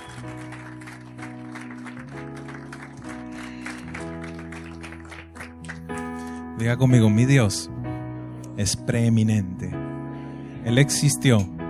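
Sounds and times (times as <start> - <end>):
audience applause: 0.0 - 6.3
speech: 6.6 - 7.8, 8.6 - 9.8, 10.7 - 11.6.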